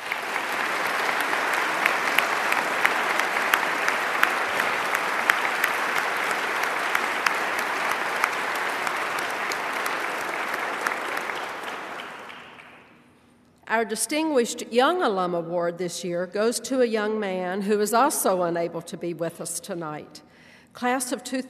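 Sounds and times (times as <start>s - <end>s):
audience applause: 0.0s - 12.9s
speech: 13.8s - 21.4s.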